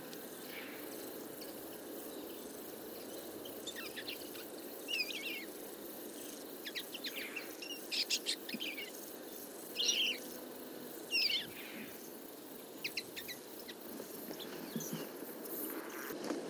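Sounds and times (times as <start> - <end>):
common linnets twittering: 0.0 - 16.1.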